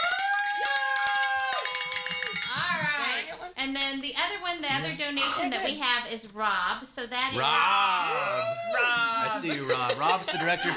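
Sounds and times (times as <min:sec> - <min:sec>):
bell ringing: 0:00.0 - 0:03.2
speech: 0:03.6 - 0:10.7
laughter: 0:09.0 - 0:10.7.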